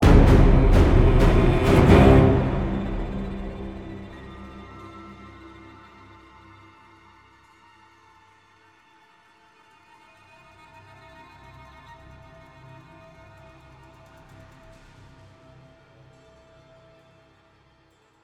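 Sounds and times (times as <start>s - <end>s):
death music stinger: 0.0s - 5.8s.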